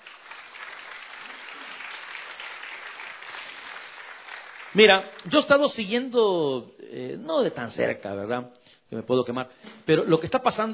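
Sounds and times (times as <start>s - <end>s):
crowd applause: 0.0s - 5.2s
speech: 4.7s - 10.7s.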